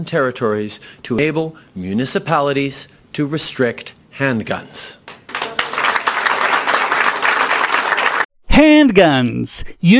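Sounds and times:
speech: 0:00.0 - 0:05.0, 0:08.6 - 0:09.9
audience applause after political speech: 0:05.3 - 0:08.3.

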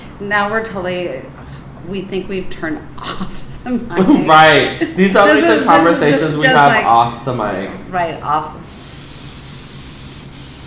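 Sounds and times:
speech: 0:00.2 - 0:08.8
hairspray being sprayed from a can: 0:08.6 - 0:10.6.

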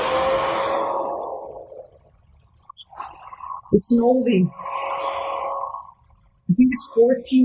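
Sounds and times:
hair dryer running on low setting: 0:00.0 - 0:01.6
speech: 0:03.7 - 0:04.6, 0:06.5 - 0:07.4.

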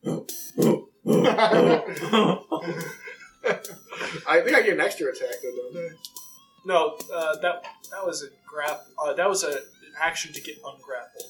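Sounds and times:
person imitating hyenas growling: 0:00.0 - 0:02.4
laughter: 0:01.1 - 0:04.7
speech: 0:01.4 - 0:03.0, 0:04.4 - 0:11.1.

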